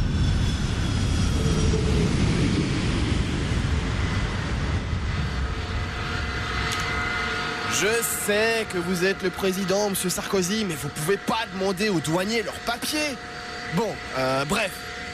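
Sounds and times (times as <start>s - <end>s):
president's own jet airplane engines roaring on arrival: 0.0s - 15.1s
speech: 7.8s - 15.0s.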